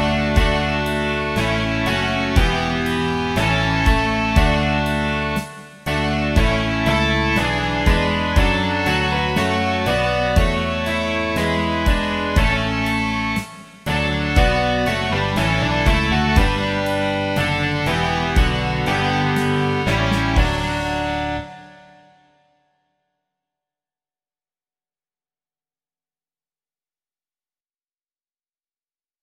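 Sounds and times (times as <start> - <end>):
rock music: 0.0 - 22.0.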